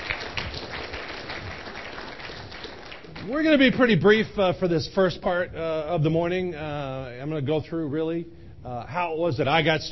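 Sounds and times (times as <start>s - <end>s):
audience applause welcoming first-time guests at a business meeting: 0.0s - 3.7s
speech: 3.2s - 9.9s.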